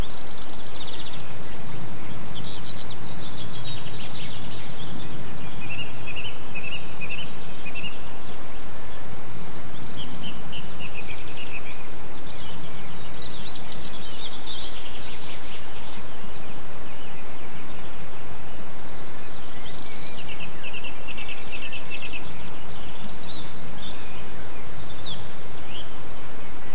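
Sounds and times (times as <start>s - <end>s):
short rising whistled birdsong: 0.0s - 26.7s.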